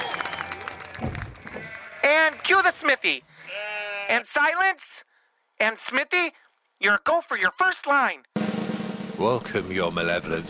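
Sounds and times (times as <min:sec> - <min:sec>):
adoring crowd cheering and applauding: 0:00.0 - 0:02.8
speech: 0:02.1 - 0:08.3, 0:09.2 - 0:10.4.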